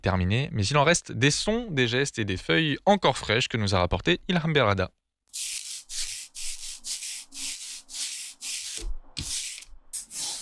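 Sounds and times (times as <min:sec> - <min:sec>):
speech: 0:00.0 - 0:05.6
roller inking an engraving plate: 0:05.4 - 0:10.3.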